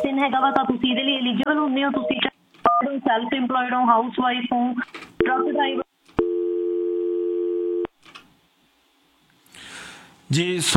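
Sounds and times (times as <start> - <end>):
faint noise: 0.0 - 10.7
speech: 0.2 - 5.8, 10.3 - 10.7
telephone tone after a call disconnects: 5.2 - 7.9.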